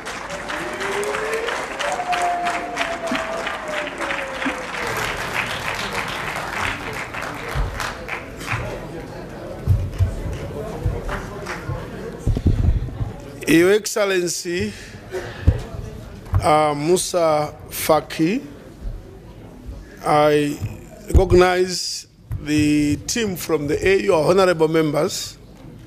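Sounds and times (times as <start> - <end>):
audience applause: 0.0 - 12.3
speech: 13.5 - 14.9, 16.4 - 18.5, 20.0 - 25.4.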